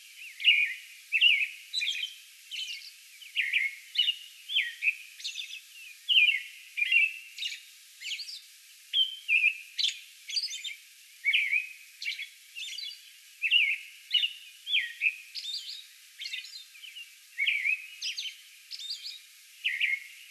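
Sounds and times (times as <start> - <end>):
American robin singing: 0.1 - 20.2.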